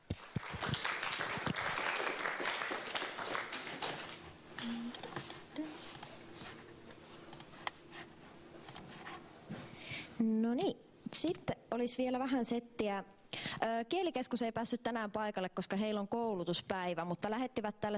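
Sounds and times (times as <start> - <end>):
crowd applause: 0.0 - 4.8
speech: 10.2 - 17.9.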